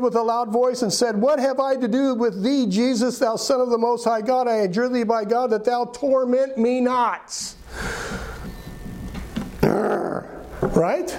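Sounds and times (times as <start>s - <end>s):
speech: 0.0s - 8.1s, 10.7s - 11.1s
voice imitating growling and snarling: 9.6s - 10.4s.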